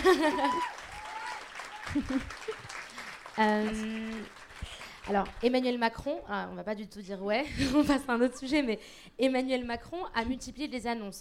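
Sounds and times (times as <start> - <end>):
laughter: 0.0 - 0.8, 1.7 - 2.7
audience applause: 0.0 - 5.4
speech: 0.1 - 0.8, 1.9 - 2.7, 3.4 - 11.1.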